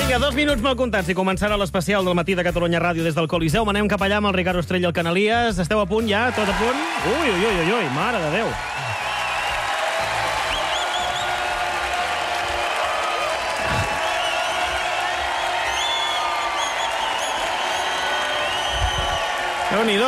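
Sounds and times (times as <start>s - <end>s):
speech: 0.2s - 8.8s, 19.7s - 20.0s
audience ovation in the Coliseum theatre: 6.2s - 20.0s.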